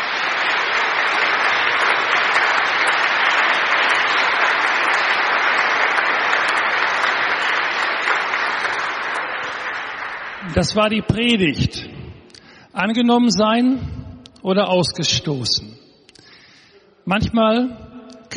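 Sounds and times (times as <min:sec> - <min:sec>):
audience applause: 0:00.0 - 0:11.0
speech: 0:10.6 - 0:11.9, 0:12.8 - 0:15.8, 0:17.0 - 0:18.3.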